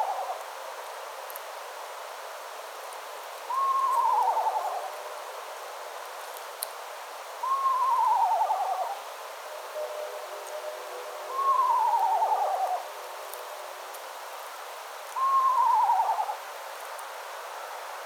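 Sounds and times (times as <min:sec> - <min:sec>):
Eastern Screech Owl calling: 0:03.5 - 0:05.0, 0:07.4 - 0:12.9, 0:15.2 - 0:16.4.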